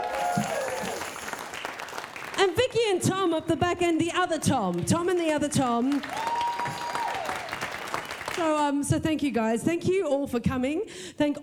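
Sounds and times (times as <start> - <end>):
audience clapping: 0.0 - 8.7
speech: 2.5 - 6.3, 8.4 - 11.4.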